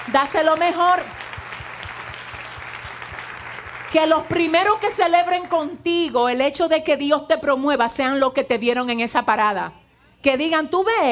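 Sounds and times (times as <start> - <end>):
audience applause: 0.0 - 4.8
speech: 0.1 - 1.2, 3.9 - 11.1.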